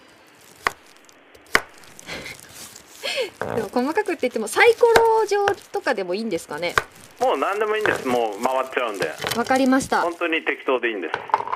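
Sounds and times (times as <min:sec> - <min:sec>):
soft scraping rustle: 0:00.0 - 0:10.6
knife chopping carrots on a cutting board: 0:01.5 - 0:01.8
speech: 0:03.2 - 0:11.5.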